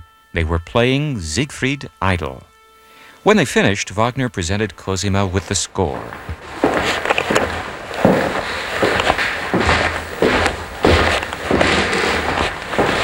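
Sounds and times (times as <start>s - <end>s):
speech: 0.4s - 2.5s, 3.2s - 6.6s
footsteps on wide oak stairs: 5.5s - 13.0s.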